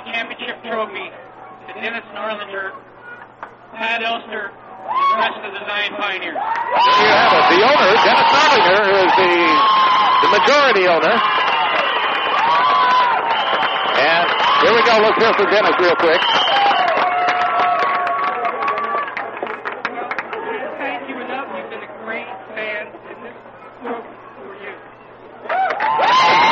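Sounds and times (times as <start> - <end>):
speech: 0.6 - 2.9, 3.7 - 11.4, 14.0 - 16.6
baseball fans cheering: 4.4 - 21.1, 24.2 - 26.5
baseball fans applauding: 6.4 - 21.0, 25.4 - 26.5.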